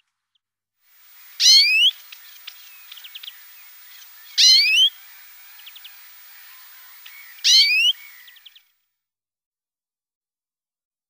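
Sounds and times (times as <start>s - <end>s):
European greenfinch twittering: 1.2s - 8.6s.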